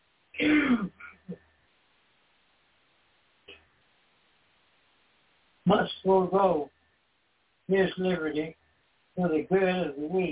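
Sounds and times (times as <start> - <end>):
throat clearing: 0.4 - 1.4
speech: 5.7 - 6.7, 7.7 - 8.6, 9.2 - 10.3.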